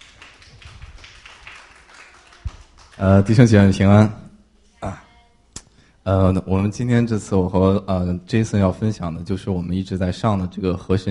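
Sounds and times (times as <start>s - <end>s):
applause: 0.0s - 3.3s
speech: 3.0s - 4.2s, 4.8s - 5.0s, 6.1s - 11.0s.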